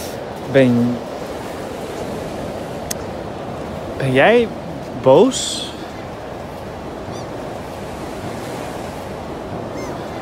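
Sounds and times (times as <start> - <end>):
sea waves breaking: 0.0 - 10.2
speech: 0.5 - 1.1, 4.0 - 5.7.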